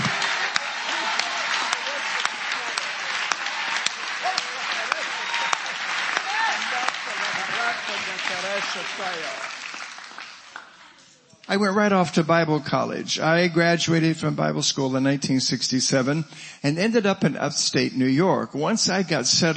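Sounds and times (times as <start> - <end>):
audience clapping: 0.0 - 11.0
speech: 8.7 - 9.5, 11.5 - 19.5.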